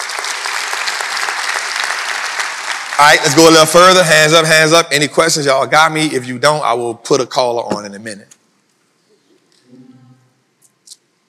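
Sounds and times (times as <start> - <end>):
audience clapping: 0.0 - 4.0
speech: 3.0 - 8.4.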